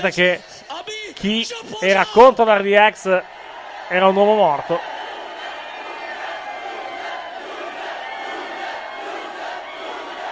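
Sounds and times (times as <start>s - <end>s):
speech: 0.0s - 4.9s
wrestling crowd jeering and shouting: 3.2s - 10.2s.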